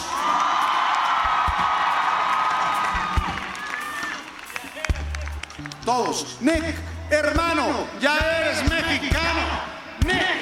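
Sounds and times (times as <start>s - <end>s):
crowd cheering and shouting: 0.0s - 6.8s, 7.4s - 10.4s
crowd applauding: 0.0s - 7.0s
speech: 5.9s - 10.4s.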